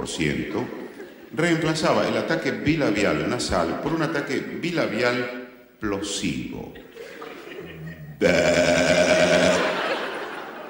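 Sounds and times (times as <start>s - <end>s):
speech: 0.0s - 7.1s, 8.2s - 9.6s
laughter: 0.7s - 1.4s, 6.8s - 10.6s
sheep bleating: 8.2s - 9.6s.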